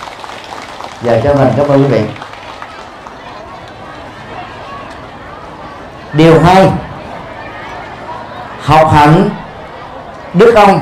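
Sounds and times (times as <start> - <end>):
crowd applauding: 0.0 - 5.4
speech: 1.0 - 2.2, 6.1 - 6.9, 8.7 - 9.4, 10.3 - 10.7
faint murmur of voices: 1.6 - 10.7.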